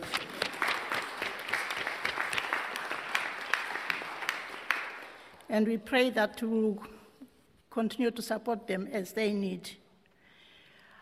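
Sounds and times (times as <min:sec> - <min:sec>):
audience clapping: 0:00.0 - 0:05.5
speech: 0:05.5 - 0:07.0, 0:07.8 - 0:09.8.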